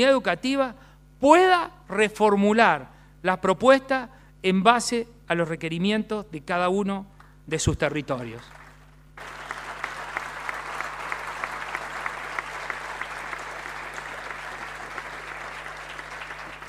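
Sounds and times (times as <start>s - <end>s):
speech: 0.0s - 8.6s
audience applause: 8.5s - 16.6s.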